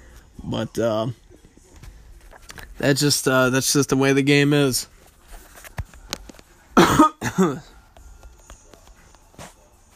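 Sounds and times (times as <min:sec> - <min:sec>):
speech: 0:00.5 - 0:01.2, 0:02.8 - 0:04.9, 0:07.4 - 0:07.7
person coughing harshly: 0:06.7 - 0:07.8.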